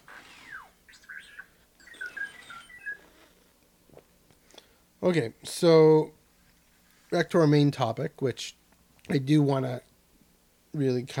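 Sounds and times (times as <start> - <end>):
robot droid beeping and whistling: 0.0 - 3.3
speech: 5.0 - 6.2, 7.1 - 9.9, 10.8 - 11.1.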